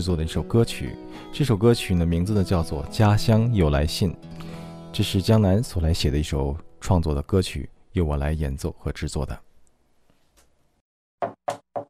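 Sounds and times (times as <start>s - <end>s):
speech: 0.0s - 9.5s
knocking on a door: 11.2s - 11.8s.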